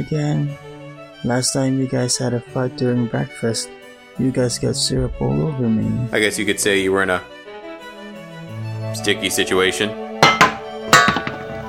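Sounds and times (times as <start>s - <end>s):
speech: 0.0s - 7.4s, 8.9s - 10.0s
metal pots and pans being hit: 10.2s - 11.6s.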